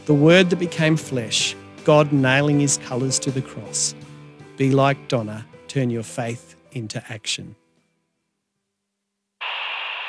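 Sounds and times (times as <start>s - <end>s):
speech: 0.0s - 7.6s
dead-air static hiss from radio station Ultra 106.5 off the air: 9.4s - 10.0s.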